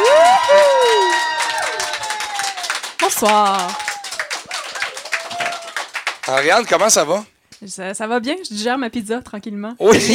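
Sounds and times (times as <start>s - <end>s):
high whoops and shouts: 0.0s - 2.8s, 3.4s - 5.9s
studio audience clapping: 0.0s - 7.2s
speech: 3.2s - 3.8s, 6.3s - 10.1s.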